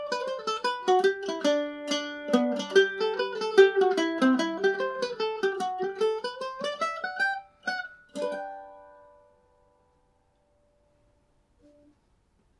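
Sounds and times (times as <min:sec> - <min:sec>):
Irish mandolin playing a hornpipe: 0:00.0 - 0:09.3.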